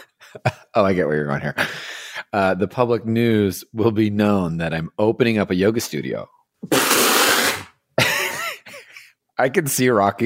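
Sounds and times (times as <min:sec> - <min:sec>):
speech: 0:00.3 - 0:07.0, 0:09.4 - 0:10.2
person spitting out a mouthful of water: 0:06.7 - 0:07.7.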